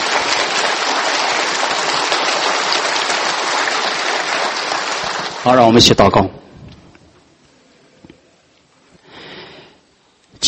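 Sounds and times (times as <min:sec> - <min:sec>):
audience applause: 0:00.0 - 0:06.1
speech: 0:05.4 - 0:06.4.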